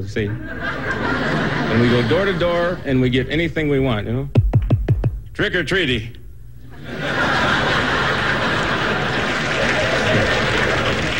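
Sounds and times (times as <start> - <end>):
speech: 0.0 - 4.4, 5.4 - 6.2
crowd laughter and chuckles: 0.3 - 3.1, 6.6 - 11.1
crowd applause: 6.8 - 11.1.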